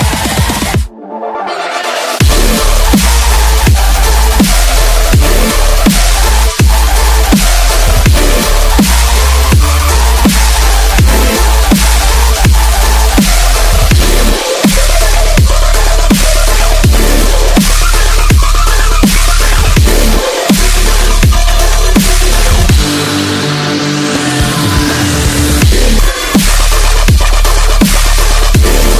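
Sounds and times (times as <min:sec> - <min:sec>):
dubstep music: 0:00.0 - 0:28.9.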